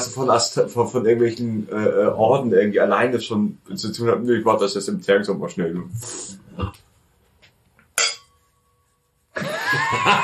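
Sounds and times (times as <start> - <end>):
speech: 0.2 - 6.8
laughter: 3.3 - 8.0, 8.8 - 10.1
glasses clinking in a toast: 8.0 - 8.4.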